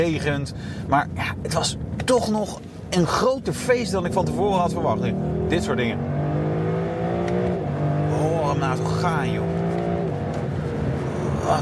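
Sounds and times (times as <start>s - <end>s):
speech: 0.0s - 6.3s, 8.6s - 9.6s, 11.5s - 11.6s
Lexus LC convertible engine revving: 3.4s - 11.6s.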